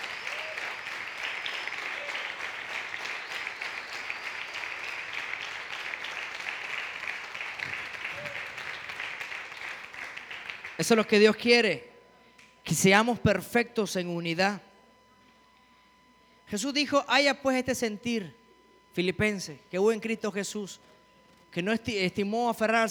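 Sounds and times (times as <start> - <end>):
audience applause: 0.0 - 11.0
speech: 10.8 - 11.9, 12.7 - 14.7, 16.5 - 20.9, 21.5 - 22.9.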